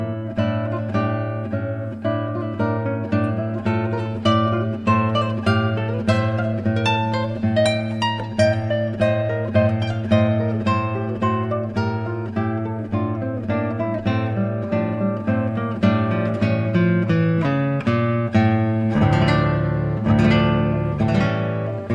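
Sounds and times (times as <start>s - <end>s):
classical guitar recorded with a studio microphone: 0.0s - 21.9s.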